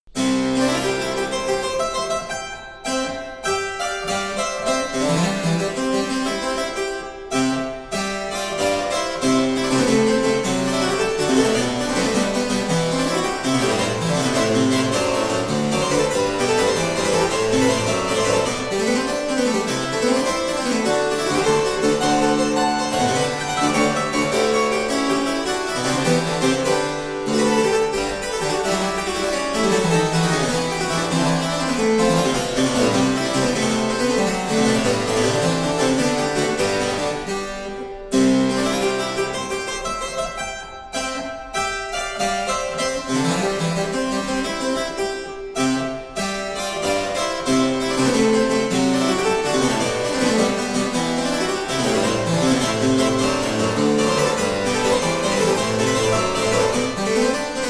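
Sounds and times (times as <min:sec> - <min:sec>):
keyboard prelude in D major: 0:00.1 - 0:57.6.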